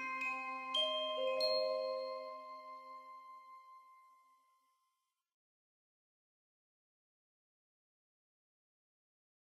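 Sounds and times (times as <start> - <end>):
fairytale waltz music: 0.0 - 4.0.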